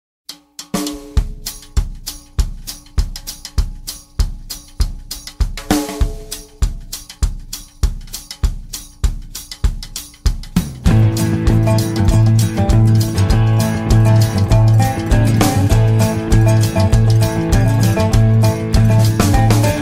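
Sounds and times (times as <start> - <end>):
instrumental music: 0.3 - 19.8.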